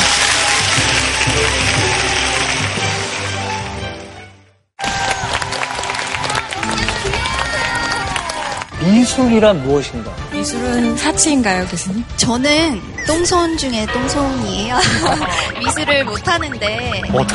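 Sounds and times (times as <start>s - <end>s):
audience applause: 0.0s - 4.2s, 4.8s - 8.8s
speech: 9.1s - 17.3s
laughter: 14.6s - 17.3s.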